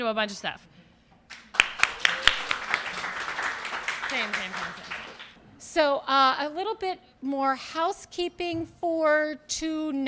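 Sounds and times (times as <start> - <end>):
speech: 0.0 - 0.8, 4.1 - 5.0, 5.6 - 10.0
audience applause: 1.3 - 5.4.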